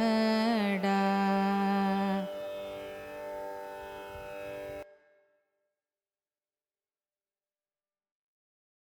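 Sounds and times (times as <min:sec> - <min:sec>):
carnatic music in raga kanada: 0:00.0 - 0:05.5.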